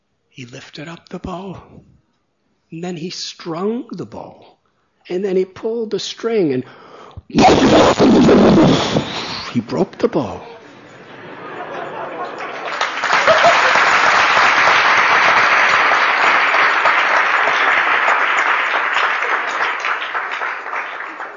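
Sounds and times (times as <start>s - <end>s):
speech: 0.4s - 2.0s, 2.7s - 8.9s, 9.5s - 10.5s
laughter: 7.4s - 9.1s, 10.6s - 15.6s
loud sustained applause from a large audience: 11.4s - 21.3s.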